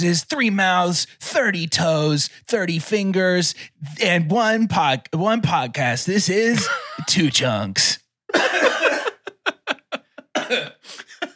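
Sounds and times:
speech: 0.0 - 8.7
laughter: 6.6 - 7.4, 8.3 - 11.3
raspy coughing: 8.3 - 11.3.

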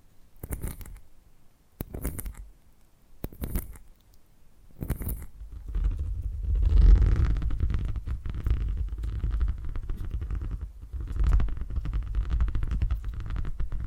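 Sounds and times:
quiet low hum: 0.0 - 13.8
deep rumbling purr: 4.8 - 13.8.

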